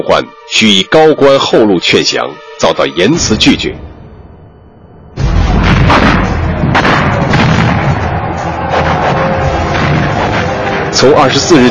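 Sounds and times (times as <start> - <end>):
speech: 0.0 - 3.9, 11.0 - 11.6
Western cannons firing in an artillery battle during the siege of Ningyuan: 5.2 - 10.9
shells exploding during the siege of Ningyuan: 5.2 - 10.9.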